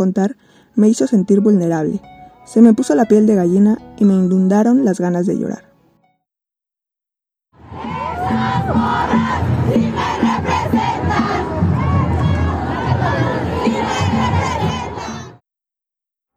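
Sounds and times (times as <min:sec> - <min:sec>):
speech: 0:00.0 - 0:05.7
crowd chanting and shouting at a women's march: 0:07.6 - 0:15.4.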